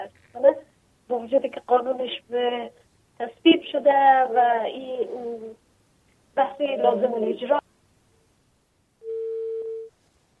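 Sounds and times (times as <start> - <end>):
faint hiss: 0.0 - 10.3
speech: 1.2 - 5.6, 6.4 - 7.6
telephone beep as a phone call drops: 9.0 - 9.9.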